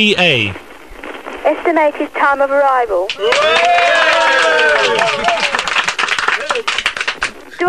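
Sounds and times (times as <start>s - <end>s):
speech: 0.0s - 0.6s, 1.4s - 5.4s
round of applause: 3.1s - 7.6s.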